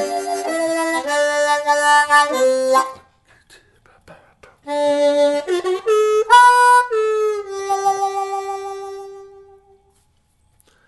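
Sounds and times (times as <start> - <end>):
harmonica played with octave tongue blocks: 0.0 - 3.1, 4.6 - 9.8.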